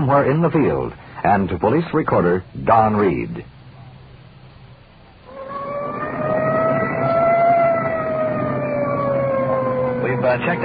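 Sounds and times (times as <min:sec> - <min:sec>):
speech: 0:00.1 - 0:03.5, 0:10.2 - 0:10.6
police car siren clearing traffic: 0:05.3 - 0:10.6.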